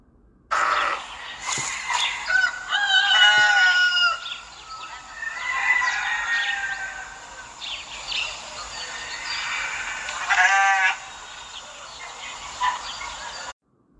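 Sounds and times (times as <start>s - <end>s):
rooster: 0.6s - 12.1s
sheep: 9.2s - 11.2s.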